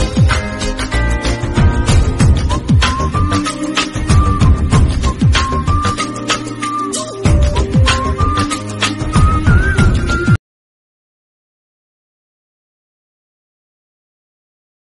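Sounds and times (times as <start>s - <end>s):
Tamil background music: 0.0s - 10.4s.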